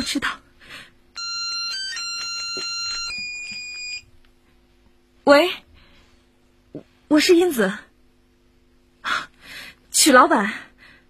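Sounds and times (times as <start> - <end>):
speech: 0.0 - 0.9, 5.3 - 5.6, 6.8 - 7.9, 10.0 - 10.7
telephone ringing: 1.1 - 4.1.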